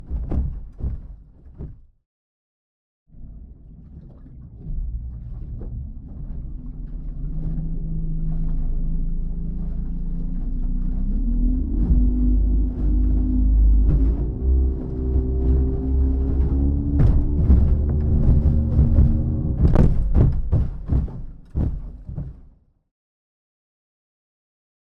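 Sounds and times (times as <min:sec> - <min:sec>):
aluminium boat hull engine accelerating: 0:03.2 - 0:22.1.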